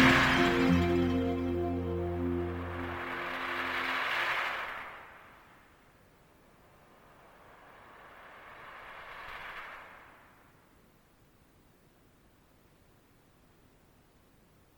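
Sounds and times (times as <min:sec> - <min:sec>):
instrumental music: 0:00.0 - 0:04.2.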